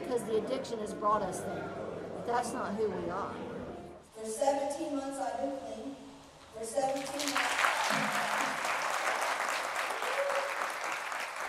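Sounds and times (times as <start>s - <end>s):
speech: 0.2s - 3.5s, 4.2s - 8.5s
standing audience applause at a community event: 7.0s - 11.4s.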